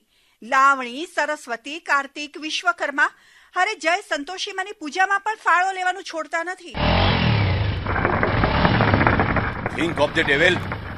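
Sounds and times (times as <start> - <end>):
speech: 0.4 - 7.3, 9.8 - 10.8
motorcycle engine revved hard beside a roadside paan stall: 6.8 - 10.9.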